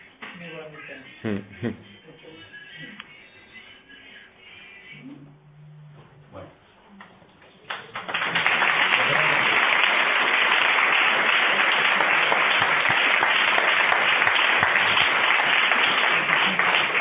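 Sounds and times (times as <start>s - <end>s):
audience applause: 7.7s - 16.9s.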